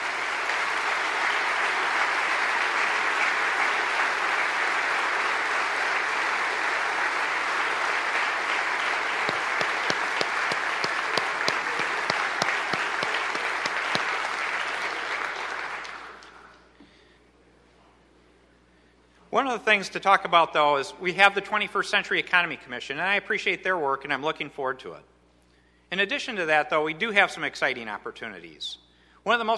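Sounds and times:
audience applause: 0.0 - 16.6
speech: 19.4 - 25.1, 25.9 - 29.5.

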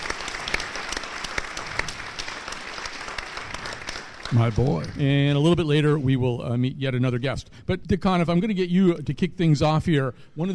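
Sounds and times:
audience applause: 0.0 - 5.2
speech: 4.3 - 10.5.

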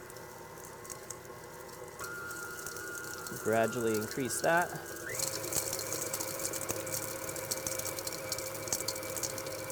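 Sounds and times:
stand mixer whipping meat mixture: 0.0 - 9.7
ice chunks tinking off the side of the bowl: 2.0 - 9.7
speech: 3.3 - 4.9.

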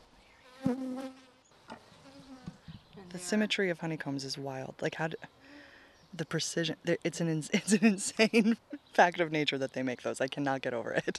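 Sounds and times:
honeybees nurse bees buzzing inside a hive: 0.4 - 3.6
speech: 3.1 - 5.4, 6.2 - 11.1.

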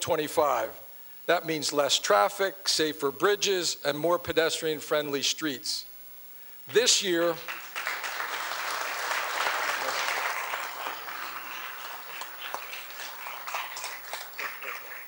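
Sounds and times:
speech: 0.0 - 5.9, 6.7 - 7.6
audience applause during a policy speech: 7.2 - 15.0
cheer led by a state secretary: 7.2 - 15.0.

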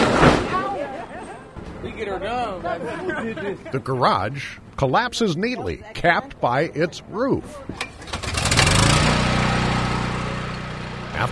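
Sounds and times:
laughter: 0.6 - 1.6, 2.2 - 4.5
speech: 2.0 - 7.9, 11.2 - 11.3
generator starting at a garage demolition site: 7.7 - 11.3.

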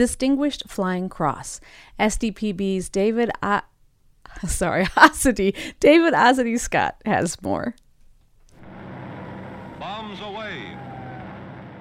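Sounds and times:
speech: 0.0 - 3.7, 4.3 - 7.8
newsreel propeller engines rumbling: 8.5 - 11.8
anti-aircraft fire cracking: 8.6 - 11.8
explosions from German flak cannons: 8.6 - 11.8.

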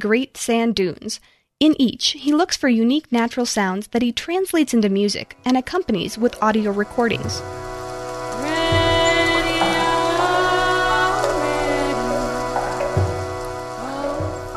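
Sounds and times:
speech: 0.0 - 7.6
rushing creek water: 7.4 - 14.5
raw solo voice singing a slow melody: 8.4 - 12.9, 13.8 - 14.5.

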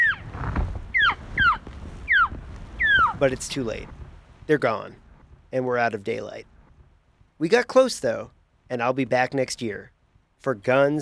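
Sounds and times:
hunter's elk call to lure elk: 0.0 - 0.3, 0.9 - 3.2
speech: 3.2 - 6.5, 7.4 - 11.0.

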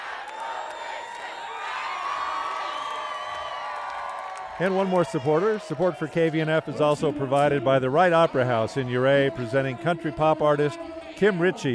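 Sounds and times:
large crowd cheering for an encore: 0.0 - 6.4
speech: 4.6 - 11.7.

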